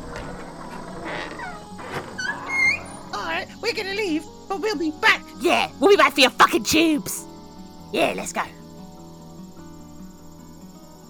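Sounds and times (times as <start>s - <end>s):
door creaking open on unoiled hinges: 0.1s - 3.0s
soft hiss: 3.2s - 8.6s
speech: 3.7s - 7.3s, 7.9s - 8.6s.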